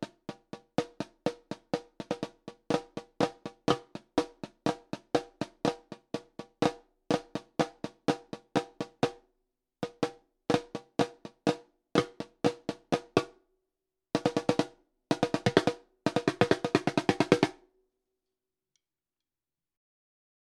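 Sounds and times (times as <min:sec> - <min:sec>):
snare drum: 0:00.0 - 0:09.2, 0:09.8 - 0:13.4, 0:14.2 - 0:17.6.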